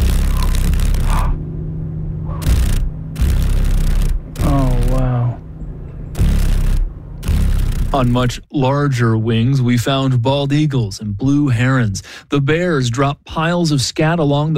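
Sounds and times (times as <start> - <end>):
crackling rustle: 0.0 - 1.4, 2.3 - 5.1, 6.1 - 8.2
paddle-tailed darner dragonfly wings vibrating: 0.0 - 1.4, 2.3 - 5.2, 6.1 - 8.2
higher warbling tone: 0.0 - 8.2
speech: 7.9 - 14.5.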